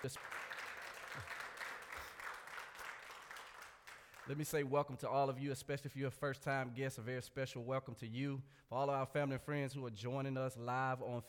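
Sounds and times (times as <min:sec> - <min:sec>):
speech: 0:00.0 - 0:00.5, 0:01.2 - 0:01.4, 0:04.2 - 0:11.2
audience hand clapping: 0:00.0 - 0:04.6.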